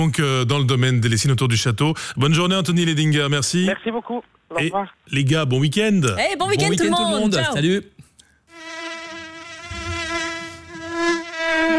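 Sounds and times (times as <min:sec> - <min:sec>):
speech: 0:00.0 - 0:08.0
insect buzzing: 0:08.5 - 0:11.7.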